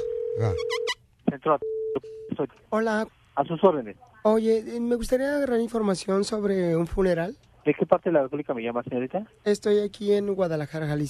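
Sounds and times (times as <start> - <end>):
telephone call tone: 0.0 - 1.0
speech: 0.4 - 11.0.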